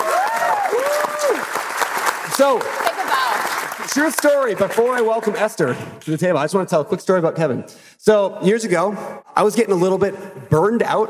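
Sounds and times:
audience round of applause: 0.0s - 5.6s
speech: 2.4s - 11.0s.

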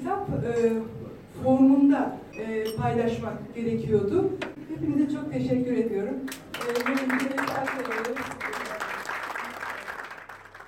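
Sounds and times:
speech: 0.3s - 8.3s
audience applause at book launch of Kamu İhalelerinde Olağan İşler: 6.5s - 10.6s.

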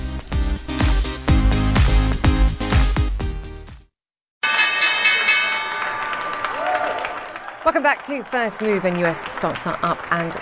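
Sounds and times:
rhythmic music: 0.0s - 6.1s
stock exchange opening bell ringing: 4.4s - 7.0s
crowd noise: 5.0s - 10.3s
applause: 5.4s - 10.3s
speech: 7.7s - 10.3s.

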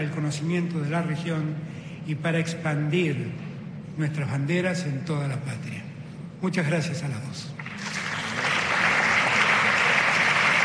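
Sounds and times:
speech: 0.0s - 7.8s
crowd applause: 7.6s - 10.6s.

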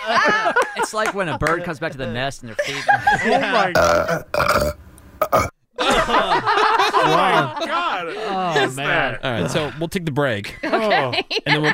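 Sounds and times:
laughter: 0.0s - 4.0s, 5.8s - 11.7s
speech: 0.1s - 5.5s, 6.1s - 11.7s
burp: 3.8s - 5.6s.

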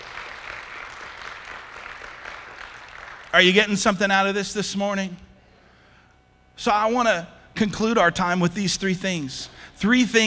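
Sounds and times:
crowd applause: 0.0s - 3.4s
speech: 3.3s - 5.2s, 6.6s - 10.2s.

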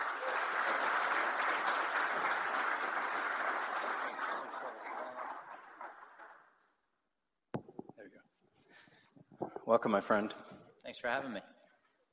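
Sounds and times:
audience applause welcoming Howie Roseman at a Philadelphia sports event: 0.0s - 6.6s
speech: 9.7s - 11.5s.

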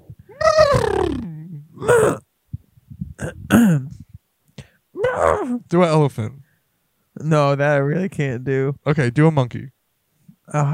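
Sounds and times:
person making a horse-like whinny with snorts and grunts: 0.0s - 2.3s, 5.0s - 5.7s
speech: 5.4s - 6.4s, 7.2s - 9.8s, 10.5s - 10.7s.

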